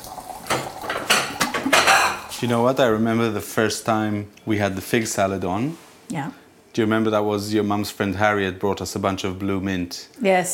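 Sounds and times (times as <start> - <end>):
plates and cutlery clattering: 0.5 - 2.5
speech: 2.4 - 10.5.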